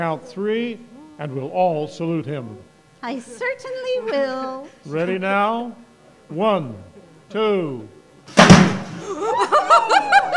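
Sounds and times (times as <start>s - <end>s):
speech: 0.0s - 8.4s
laughter: 3.1s - 5.6s, 8.9s - 10.3s
cannon firing a giant firecracker, radio comedy sound effect: 8.3s - 9.0s.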